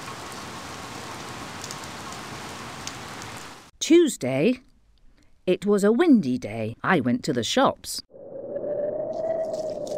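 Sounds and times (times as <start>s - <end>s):
raindrops pattering on a surface: 0.0s - 3.7s, 9.2s - 9.9s
steady rain: 0.0s - 3.7s
speech: 3.8s - 4.7s, 5.5s - 8.1s.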